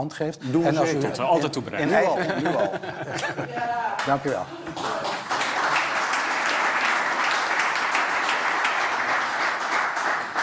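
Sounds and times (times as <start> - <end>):
speech: 0.0 - 5.0
laughter: 1.8 - 4.0
applause in Buitenhof: 4.0 - 10.4.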